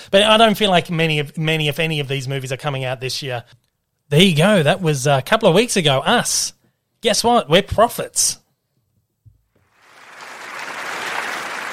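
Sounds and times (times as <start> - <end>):
speech: 0.1 - 8.4
applause sound effect: 9.7 - 11.7.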